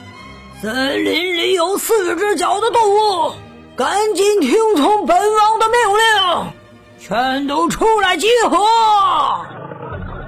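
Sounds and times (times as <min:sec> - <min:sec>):
speech: 0:00.6 - 0:09.6
lion roaring: 0:09.3 - 0:10.2.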